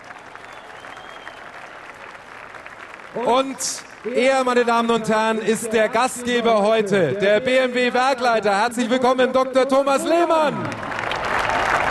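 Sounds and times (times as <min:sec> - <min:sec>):
audience applause welcoming the BMW board chairman at a plant event: 0:00.0 - 0:05.5, 0:10.2 - 0:11.9
speech: 0:03.1 - 0:10.7.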